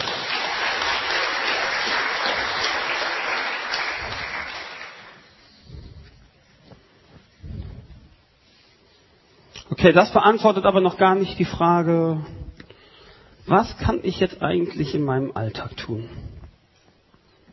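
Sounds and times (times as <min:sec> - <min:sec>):
short round of applause: 0:00.0 - 0:05.3
speech: 0:09.8 - 0:12.4, 0:13.5 - 0:16.2.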